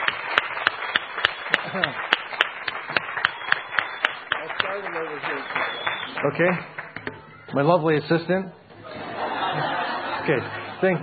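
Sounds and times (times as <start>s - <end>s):
small group clapping: 0.0s - 7.2s
speech: 1.7s - 2.1s, 4.8s - 6.8s, 7.5s - 8.6s, 10.3s - 11.0s
laughter: 8.8s - 11.0s.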